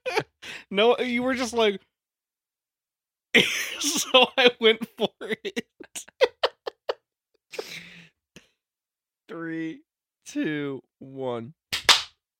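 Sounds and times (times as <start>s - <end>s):
speech: 0.7s - 1.9s, 3.4s - 6.2s, 9.3s - 11.6s
laughter: 3.4s - 7.0s
hosts clapping hands together: 11.7s - 12.2s.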